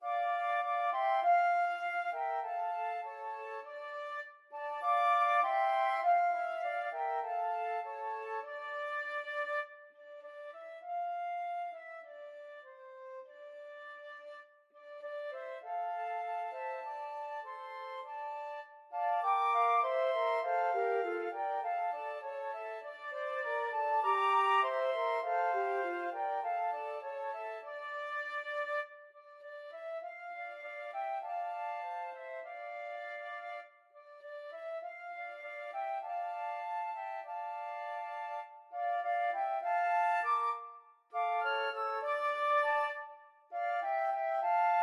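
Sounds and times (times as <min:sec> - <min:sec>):
flute: 0:00.0 - 0:44.8.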